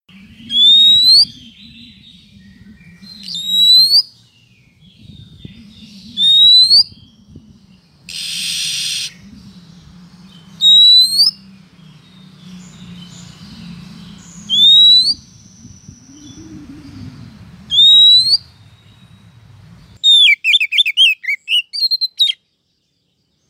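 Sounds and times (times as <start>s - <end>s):
female Oriental magpie-robin calling the male: 0.4s - 4.2s, 5.4s - 7.2s, 8.1s - 9.3s, 10.5s - 11.5s, 14.2s - 17.0s, 17.7s - 18.9s, 20.0s - 22.4s.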